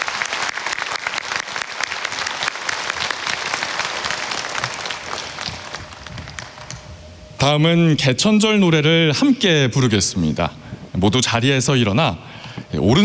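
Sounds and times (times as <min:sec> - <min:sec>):
audience applause: 0:00.0 - 0:06.9
speech: 0:07.4 - 0:13.0.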